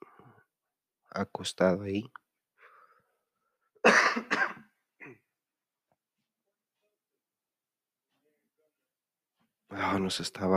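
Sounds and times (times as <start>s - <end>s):
speech: 1.2s - 2.2s, 10.0s - 10.5s
person with a dry throat clearing it and coughing: 3.8s - 5.3s.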